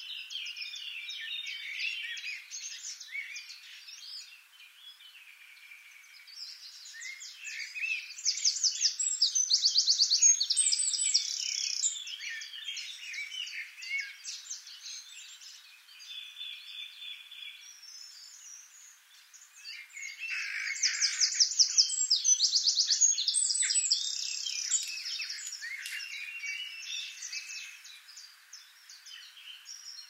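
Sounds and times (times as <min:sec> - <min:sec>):
Eurasian wren song: 0:00.0 - 0:30.0
faint birdsong: 0:00.0 - 0:30.0.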